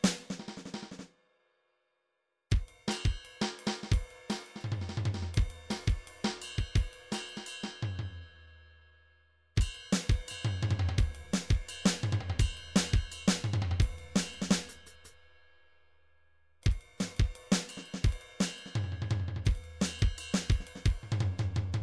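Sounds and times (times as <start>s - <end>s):
MIDI drum cymbal: 0.0s - 1.0s, 2.5s - 8.2s, 9.6s - 15.2s, 16.7s - 21.8s.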